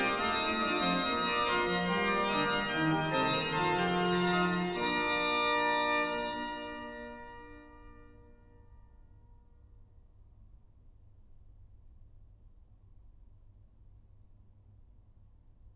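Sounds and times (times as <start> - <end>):
organ fughetta: 0.0 - 7.6.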